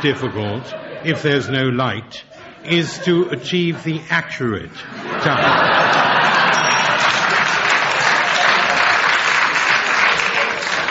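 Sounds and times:
speech: 0.0 - 6.0
laughter: 0.0 - 9.2
live audience round of applause: 5.6 - 10.8.

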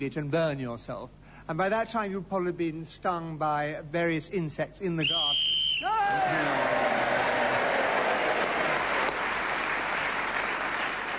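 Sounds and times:
speech: 0.0 - 7.2
naval audience applause: 6.1 - 11.1.

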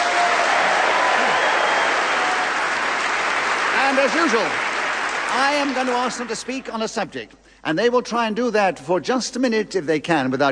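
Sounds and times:
studio audience applause welcoming panellists on a comedy panel show: 0.0 - 7.0
speech: 4.0 - 4.7, 5.3 - 10.5.

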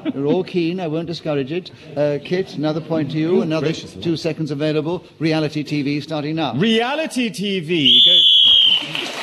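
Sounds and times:
speech: 0.2 - 9.1
shrill whistle blast: 7.8 - 9.0.

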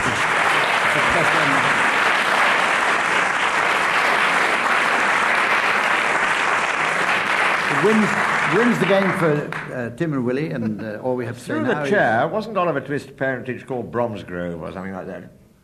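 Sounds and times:
large audience applause: 0.0 - 9.8
speech: 7.8 - 15.4.

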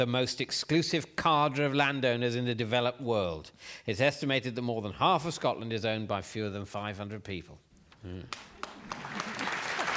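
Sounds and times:
speech: 0.0 - 9.3
audience applause: 8.3 - 9.9.

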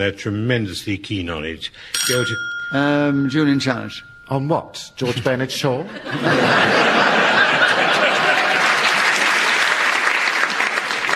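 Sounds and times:
speech: 0.0 - 7.3
laughter: 5.0 - 9.9
audience applause: 6.8 - 11.1.

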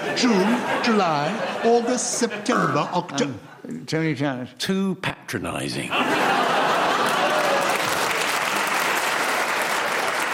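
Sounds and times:
laughter: 0.0 - 3.8, 5.9 - 8.8
speech: 0.2 - 6.4
audience applause: 6.2 - 10.3.

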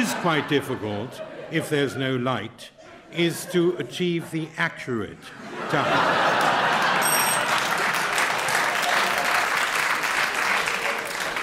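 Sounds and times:
speech: 0.0 - 6.5
laughter: 0.0 - 9.6
audience round of applause: 6.2 - 11.4.

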